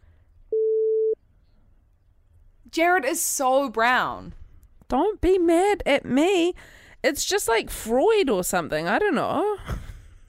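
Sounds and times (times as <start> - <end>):
censor beep: 0.5 - 1.2
speech: 2.7 - 9.8.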